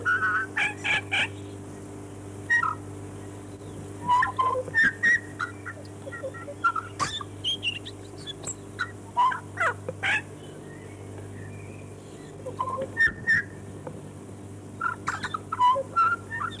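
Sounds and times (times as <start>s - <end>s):
Chatham Island tui singing: 0.0s - 13.7s, 14.7s - 16.5s.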